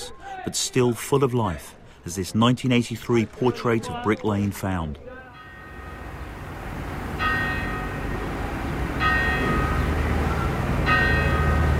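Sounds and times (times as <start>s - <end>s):
speech: 0.4s - 5.1s
Truman's clock bell chiming: 5.4s - 6.2s, 7.2s - 8.3s, 9.0s - 11.7s.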